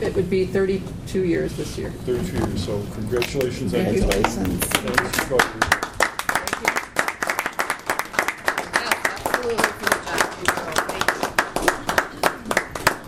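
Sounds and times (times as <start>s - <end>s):
speech: 0.1s - 5.8s
standing ovation clapping for a retiring county employee: 3.4s - 13.0s.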